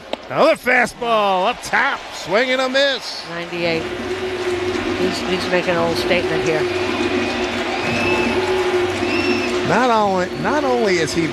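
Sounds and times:
large stadium crowd cheering: 0.0 - 11.3
speech: 0.3 - 4.4, 5.0 - 7.2, 9.7 - 11.3
scattered whistles from the crowd: 6.6 - 9.8.

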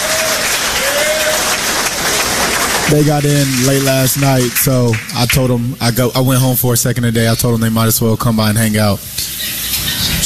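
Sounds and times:
audience applause welcoming a player's mother and father: 0.0 - 6.2
speech: 2.9 - 9.6.

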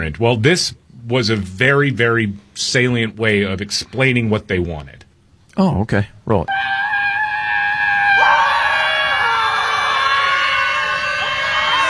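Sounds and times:
speech: 0.0 - 5.0, 5.6 - 6.8
crowd of protesters screaming together: 6.5 - 11.8.

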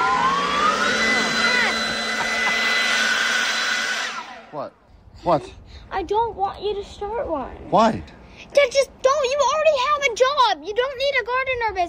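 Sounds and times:
leaf blower: 0.0 - 4.6
speech: 5.2 - 11.8.

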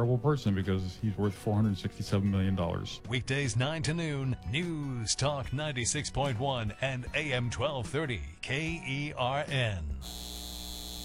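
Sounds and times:
speech: 0.0 - 10.4
data center electrical hum: 10.0 - 11.0.

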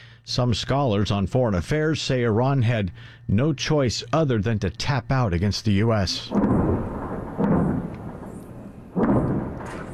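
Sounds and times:
speech: 0.3 - 6.7
explosions from fighting between Israel and Lebanon: 6.3 - 9.9
low roar: 6.3 - 9.9.

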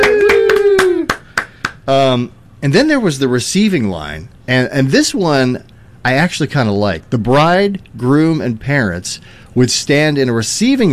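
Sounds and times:
person cheering: 0.0 - 1.4
hand claps after a mock wedding ceremony: 0.0 - 1.9
speech: 1.9 - 10.9.

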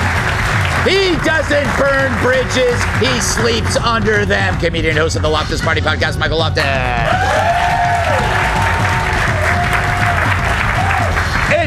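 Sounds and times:
audience applause: 0.0 - 4.9, 7.0 - 11.6
speech: 0.8 - 7.8.

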